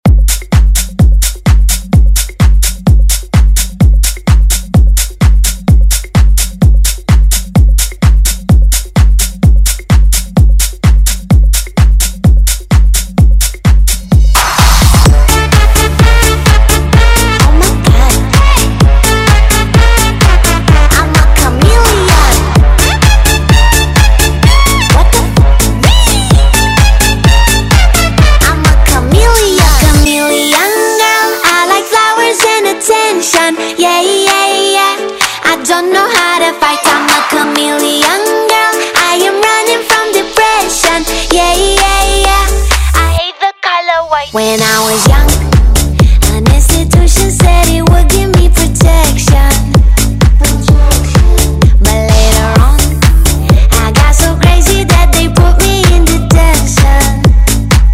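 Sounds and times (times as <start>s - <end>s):
pop dance music: 0.0s - 57.9s.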